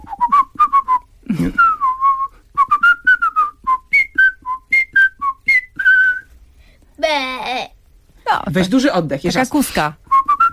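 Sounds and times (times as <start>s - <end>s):
person whistling a children's theme tune: 0.0s - 6.3s, 10.1s - 10.5s
speech: 8.6s - 10.0s.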